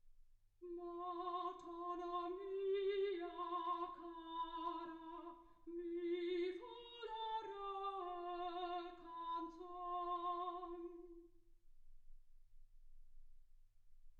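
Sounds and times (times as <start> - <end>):
soprano singing: 0.6 - 11.3.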